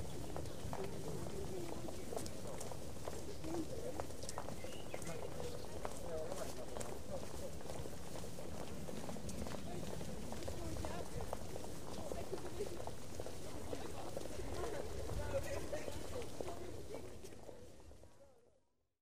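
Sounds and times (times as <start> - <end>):
people talking in a city park: 0.0 - 7.8, 9.0 - 18.4
footsteps of people in a city park: 0.0 - 17.7
birds in a city park: 4.3 - 5.7.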